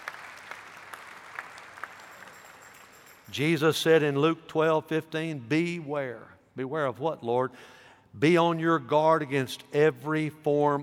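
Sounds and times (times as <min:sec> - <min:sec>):
audience applause: 0:00.0 - 0:03.0
speech: 0:03.3 - 0:10.8.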